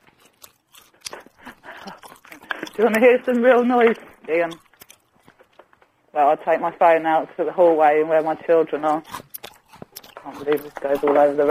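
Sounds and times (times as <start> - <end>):
person chewing food with mouth full: 0.0 - 6.0, 8.8 - 11.4
speech: 2.8 - 4.6, 6.2 - 9.2, 10.3 - 11.4.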